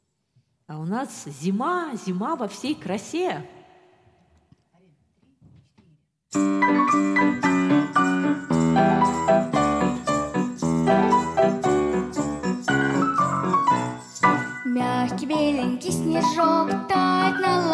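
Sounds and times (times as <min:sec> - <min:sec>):
speech: 0:00.7 - 0:03.6, 0:15.8 - 0:17.7
small bells jingling: 0:06.3 - 0:16.4.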